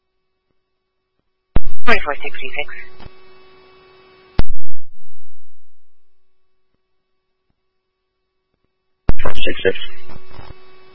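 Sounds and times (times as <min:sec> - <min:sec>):
speech: 0:01.9 - 0:03.2, 0:09.5 - 0:10.5
laptop phone call request ringing tone: 0:09.2 - 0:10.1.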